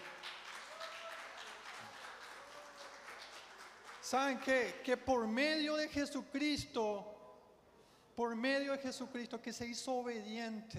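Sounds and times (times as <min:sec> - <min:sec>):
audience applause: 0:00.0 - 0:04.2
speech: 0:04.1 - 0:07.1, 0:08.2 - 0:10.7.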